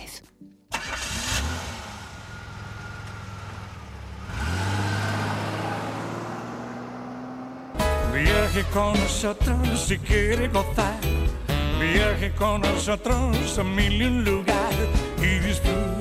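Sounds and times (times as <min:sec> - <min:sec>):
car engine cranking, idling and revving: 0:00.7 - 0:08.4
speech: 0:08.2 - 0:11.2, 0:11.8 - 0:16.0.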